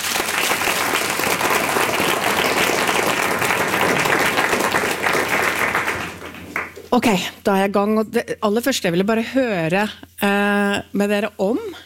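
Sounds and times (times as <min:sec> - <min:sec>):
audience applause for the panel: 0:00.0 - 0:06.8
speech: 0:07.0 - 0:11.8.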